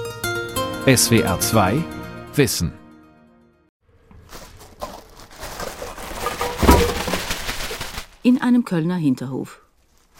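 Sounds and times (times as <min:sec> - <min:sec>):
speech: 0:00.8 - 0:02.8, 0:08.2 - 0:09.7
bag of packaging waste tipped into yellow bin: 0:04.0 - 0:08.1.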